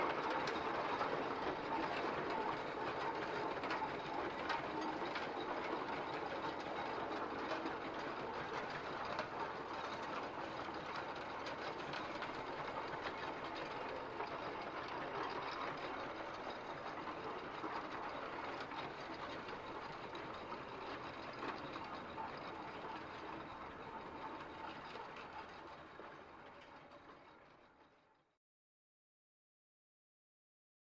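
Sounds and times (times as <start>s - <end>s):
steam tractor approaching and passing from left to right: 0.0s - 26.5s.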